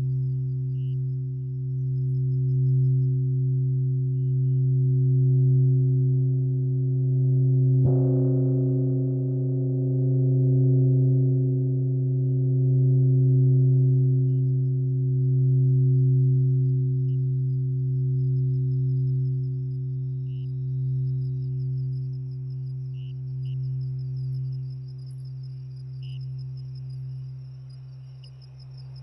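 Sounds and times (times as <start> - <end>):
night crickets chirping: 0.0 - 7.8, 8.6 - 29.0
singing bowl: 0.0 - 29.0
10 MHz alpha binaural tone: 17.1 - 29.0.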